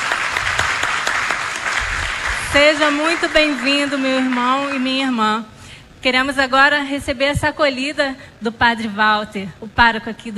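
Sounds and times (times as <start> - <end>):
church congregation clapping: 0.0 - 5.0
speech: 2.5 - 10.3.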